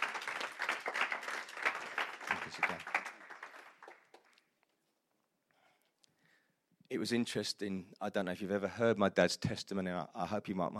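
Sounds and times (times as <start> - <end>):
audience applause: 0.0 - 4.4
speech: 2.5 - 2.9, 6.9 - 10.7.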